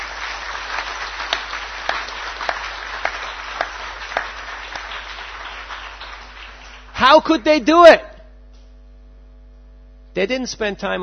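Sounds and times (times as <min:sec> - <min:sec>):
audience applause: 0:00.0 - 0:07.7
speech: 0:07.0 - 0:08.1, 0:10.2 - 0:11.0.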